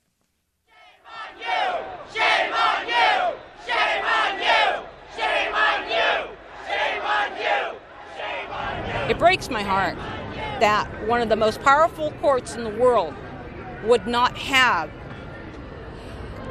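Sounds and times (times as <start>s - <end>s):
crowd cheering and shouting: 1.0s - 11.0s
speech: 9.3s - 13.2s, 13.8s - 15.0s.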